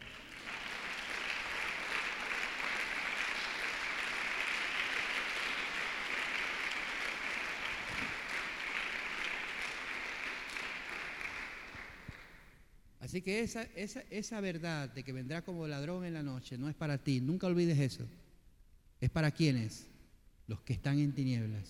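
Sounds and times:
audience applauding: 0:00.0 - 0:12.4
speech: 0:13.2 - 0:18.2, 0:19.0 - 0:19.9, 0:20.5 - 0:21.6.

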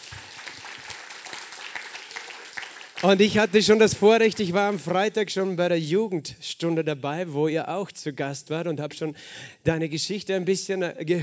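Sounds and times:
crowd applauding: 0:00.0 - 0:04.9
speech: 0:03.0 - 0:11.2.

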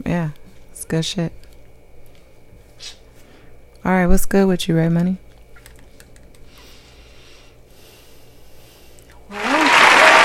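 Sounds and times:
speech: 0:00.0 - 0:01.4, 0:02.8 - 0:03.0, 0:03.8 - 0:05.2
crowd applause: 0:09.3 - 0:10.2.

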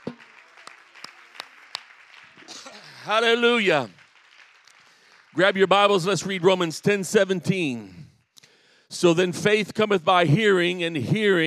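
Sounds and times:
audience clapping hands: 0:00.0 - 0:07.6
speech: 0:03.0 - 0:04.0, 0:05.4 - 0:08.0, 0:08.9 - 0:11.4.

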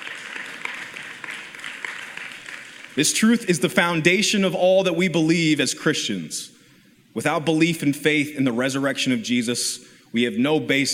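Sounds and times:
audience clapping: 0:00.0 - 0:03.6
speech: 0:03.0 - 0:06.6, 0:07.2 - 0:10.9.

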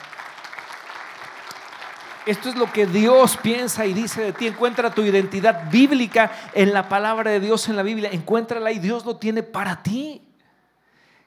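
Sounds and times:
audience applause: 0:00.0 - 0:07.9
speech: 0:02.3 - 0:10.3.

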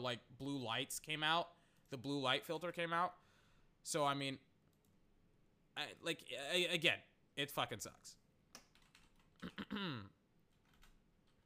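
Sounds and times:
speech: 0:00.0 - 0:03.2, 0:03.8 - 0:04.5, 0:05.8 - 0:08.2, 0:09.4 - 0:10.2
typing on a computer keyboard: 0:08.5 - 0:09.6, 0:10.5 - 0:11.4.

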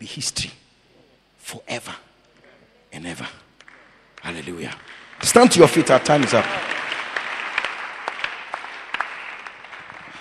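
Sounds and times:
speech: 0:00.1 - 0:00.6, 0:01.5 - 0:02.0, 0:04.3 - 0:06.7
audience hand clapping: 0:03.6 - 0:10.2.

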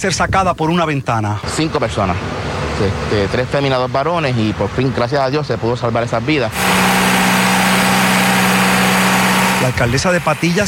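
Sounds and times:
speech: 0:00.0 - 0:06.8, 0:09.6 - 0:10.6
water pump running at a lagoon: 0:06.5 - 0:10.6.

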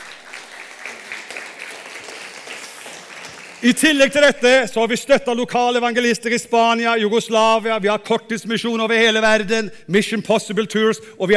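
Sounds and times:
audience applause: 0:00.0 - 0:04.0
speech: 0:03.6 - 0:11.3.

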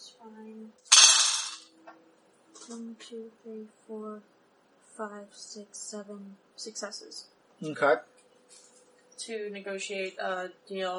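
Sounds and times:
dice being gathered and rattled: 0:00.9 - 0:01.6
speech: 0:02.7 - 0:04.4, 0:05.0 - 0:08.6, 0:09.2 - 0:10.9.

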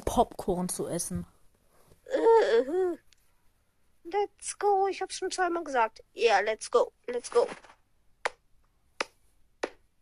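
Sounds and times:
speech: 0:00.2 - 0:01.3, 0:02.4 - 0:03.0, 0:04.1 - 0:07.7
hand clapping: 0:08.2 - 0:08.4, 0:09.0 - 0:09.8.

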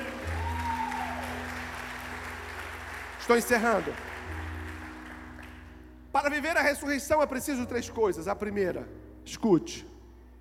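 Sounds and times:
audience applauding: 0:00.0 - 0:05.9
speech: 0:03.2 - 0:04.1, 0:06.2 - 0:09.9.

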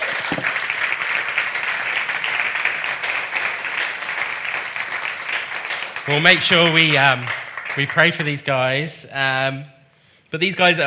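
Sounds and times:
crowd applause: 0:00.0 - 0:08.4
speech: 0:06.1 - 0:10.8.

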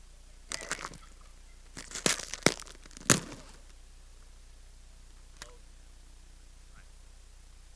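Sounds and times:
chewy chocolate cookie crunching: 0:00.5 - 0:01.1, 0:01.7 - 0:03.7.

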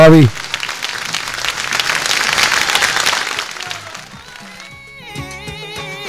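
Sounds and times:
applause: 0:00.0 - 0:04.8.

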